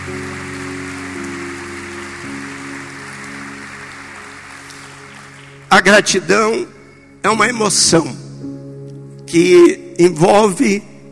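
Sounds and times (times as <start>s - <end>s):
audience applause: 0.0s - 5.7s
speech: 5.7s - 8.2s, 9.3s - 10.9s.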